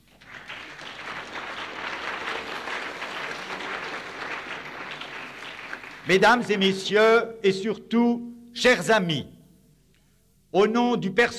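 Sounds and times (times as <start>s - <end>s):
audience applause: 0.0s - 6.2s
speech: 6.0s - 9.4s, 10.5s - 11.3s.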